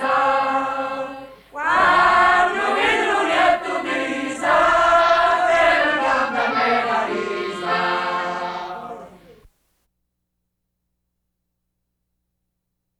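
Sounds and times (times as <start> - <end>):
men singing a wedding serenade in Montecalvo: 0.0 - 9.4.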